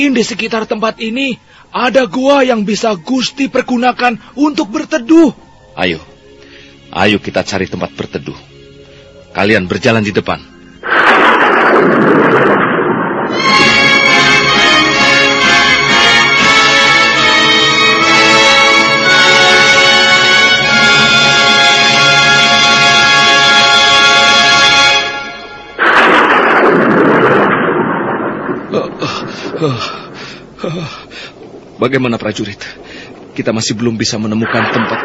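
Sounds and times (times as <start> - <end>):
speech: 0.0 - 6.1, 6.9 - 8.5, 9.3 - 11.1, 29.6 - 29.9, 30.6 - 32.8, 33.4 - 35.0
thunder: 10.8 - 15.1, 25.8 - 30.4, 34.3 - 35.0
heavy rain: 10.8 - 35.0.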